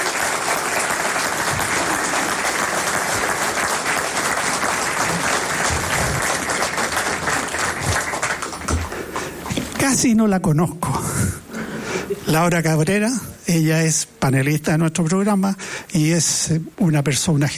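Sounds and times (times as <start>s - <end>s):
audience applause: 0.0s - 9.4s
speech: 9.9s - 11.1s, 12.3s - 17.5s.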